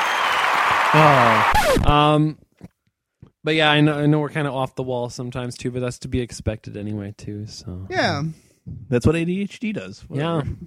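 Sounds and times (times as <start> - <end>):
applause: 0.0 - 1.7
speech: 0.9 - 2.7, 3.4 - 10.6.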